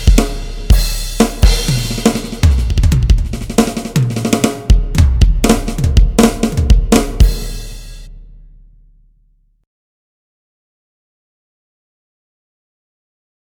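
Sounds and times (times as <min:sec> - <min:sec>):
heavy slow groove music: 0:00.0 - 0:08.1.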